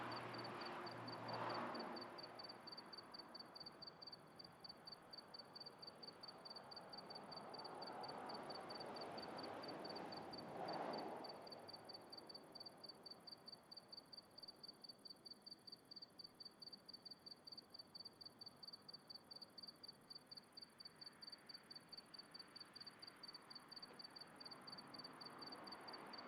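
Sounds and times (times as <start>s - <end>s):
car passing: 0.0s - 3.3s, 6.7s - 12.2s, 24.4s - 26.2s
crickets chirping on a country night: 0.0s - 26.2s.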